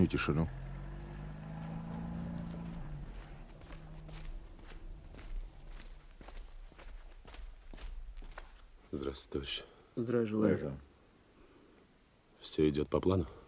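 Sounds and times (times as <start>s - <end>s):
speech: 0.0s - 0.6s, 9.1s - 10.9s, 12.4s - 13.4s
low engine hum: 0.0s - 8.4s
footsteps walking: 1.5s - 9.0s.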